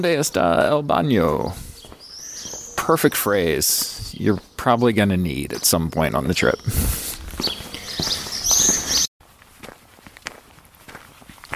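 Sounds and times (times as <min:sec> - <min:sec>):
speech: 0:00.0 - 0:01.7, 0:02.9 - 0:08.1
footsteps walking on the Camino across the Meseta: 0:01.4 - 0:11.5.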